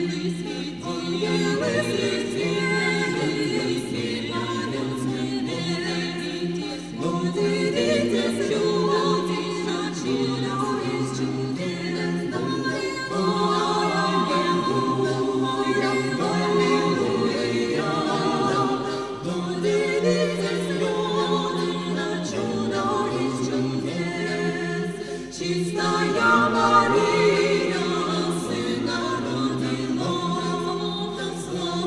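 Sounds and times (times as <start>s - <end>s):
French Christmas carol: 0.0s - 31.8s.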